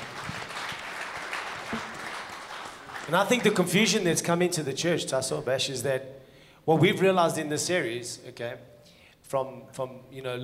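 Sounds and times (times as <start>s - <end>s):
crowd applause: 0.0s - 3.8s
speech: 1.7s - 1.9s, 3.1s - 8.7s, 9.3s - 10.4s.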